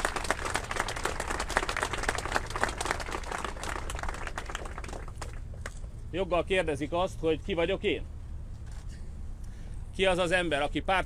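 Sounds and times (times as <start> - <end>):
audience applause: 0.0 - 5.4
speech: 6.1 - 8.1, 10.0 - 11.0.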